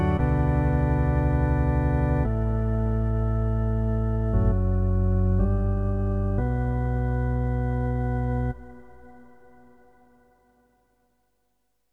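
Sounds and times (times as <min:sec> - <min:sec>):
organ playing in a hall: 0:00.0 - 0:08.6.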